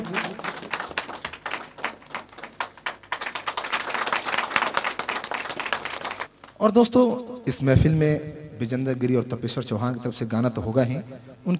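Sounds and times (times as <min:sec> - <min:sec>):
audience clapping in welcome: 0:00.0 - 0:06.6
speech: 0:06.6 - 0:11.5.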